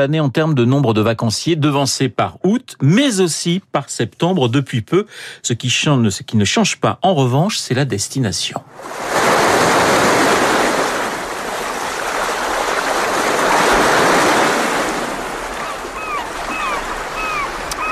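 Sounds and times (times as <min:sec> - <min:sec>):
speech: 0:00.0 - 0:09.8
ocean waves: 0:08.7 - 0:17.8
seagulls calling: 0:12.7 - 0:17.8.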